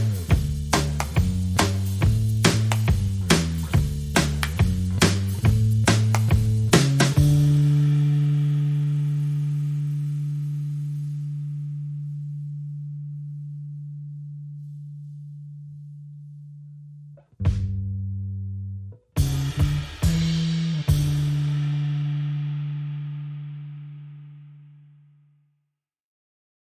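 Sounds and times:
drums: 0:00.0 - 0:12.5, 0:17.3 - 0:18.1, 0:19.1 - 0:24.1
bass: 0:00.0 - 0:25.8.

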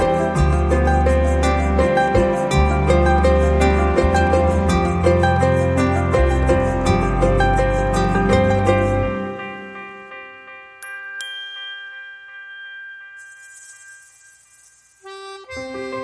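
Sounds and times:
acoustic guitar without lead part: 0:00.0 - 0:09.5.

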